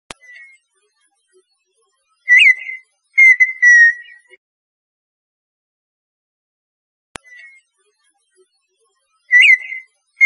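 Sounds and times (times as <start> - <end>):
partridge song of clicks and whistles: 2.3 - 4.4, 9.3 - 10.2.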